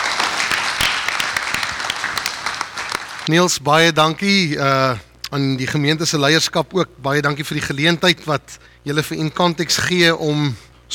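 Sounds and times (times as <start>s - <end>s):
church congregation applause welcoming a guest speaker: 0.0s - 3.3s
speech: 3.3s - 10.9s.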